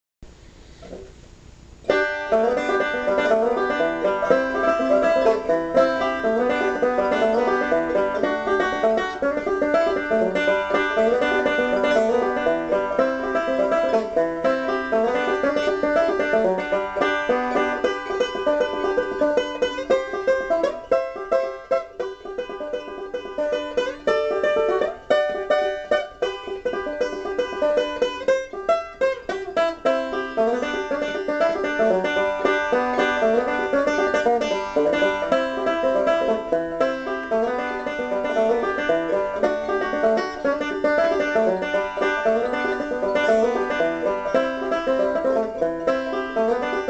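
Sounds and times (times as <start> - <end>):
banjo: 0.7 - 1.2, 1.8 - 46.8.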